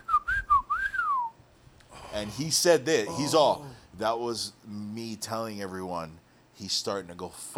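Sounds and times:
person whistling a bird-like call: 0.0 - 1.4
speech: 2.2 - 7.5.

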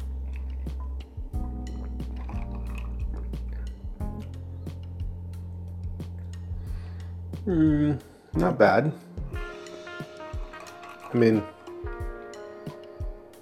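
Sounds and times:
steady low hum: 0.0 - 8.3
person sipping a cocktail: 2.1 - 3.7
speech: 7.4 - 9.1, 11.1 - 11.5.

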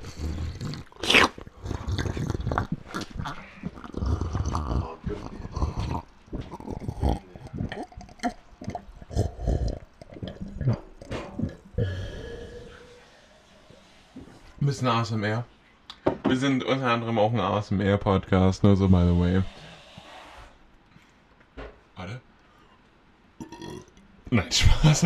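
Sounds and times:
water glugging as it is poured: 1.4 - 12.1
speech: 14.7 - 15.6, 16.3 - 19.6, 24.3 - 25.0.

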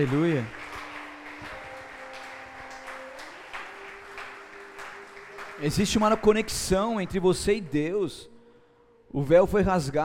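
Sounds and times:
speech: 0.0 - 0.6, 5.6 - 8.3, 9.1 - 10.0
audience applauding: 0.0 - 7.7
sustained organ or keyboard tones: 0.0 - 8.4.

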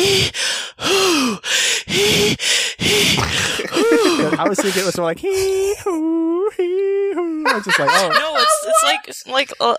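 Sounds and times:
voice imitating Lamaze breathing: 0.0 - 5.9
laughter: 3.2 - 5.8, 7.2 - 9.2
speech: 4.4 - 9.7.

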